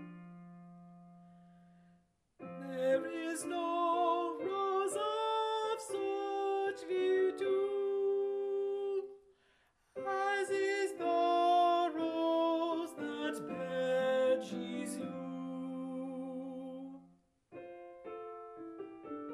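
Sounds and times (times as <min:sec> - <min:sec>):
alto voice singing: 0:02.4 - 0:09.2, 0:10.0 - 0:17.1.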